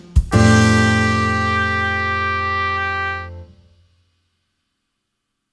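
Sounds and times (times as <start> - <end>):
swing trumpet: 0.3 - 3.6.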